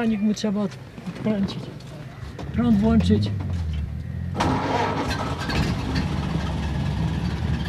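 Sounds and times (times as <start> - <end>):
speech: 0.0 - 1.8, 2.6 - 3.7
old car engine starting and idling: 2.7 - 7.6.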